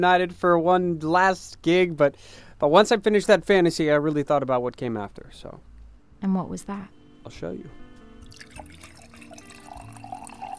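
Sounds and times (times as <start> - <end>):
speech: 0.0 - 7.8
wine pouring into a glass: 8.2 - 10.5.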